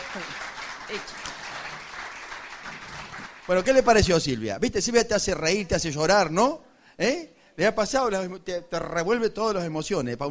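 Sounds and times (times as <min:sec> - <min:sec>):
audience applause: 0:00.0 - 0:03.8
speech: 0:00.1 - 0:01.3, 0:03.5 - 0:10.3.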